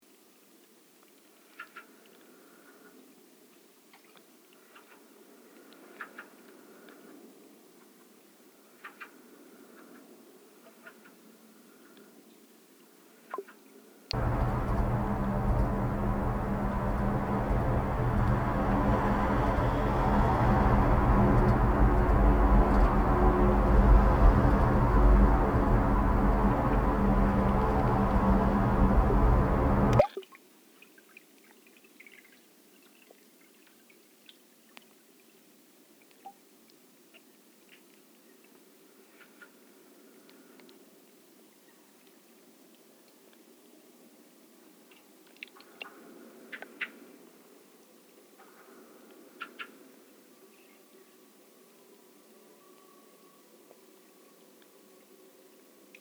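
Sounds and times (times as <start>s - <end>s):
canal ambience in Utrecht: 14.2s - 30.0s.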